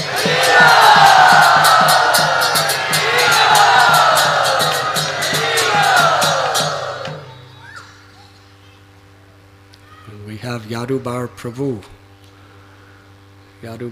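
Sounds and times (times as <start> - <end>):
steady rhythmic beat: 0.0 - 7.5
crowd cheering, whooping and shouting to welcome a spiritual leader at an ISKCON gathering: 0.0 - 7.8
speech: 10.9 - 12.0, 13.6 - 13.8.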